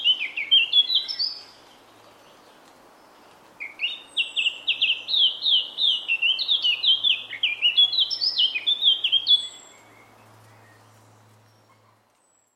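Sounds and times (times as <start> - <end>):
Eurasian blackcap singing: 0.0 - 1.6, 3.6 - 10.0.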